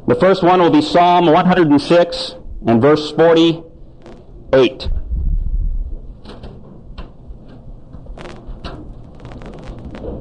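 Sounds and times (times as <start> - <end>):
speech: 0.1 - 3.7, 4.5 - 5.0
low rumble: 3.6 - 10.1
book pages turning: 9.2 - 10.1.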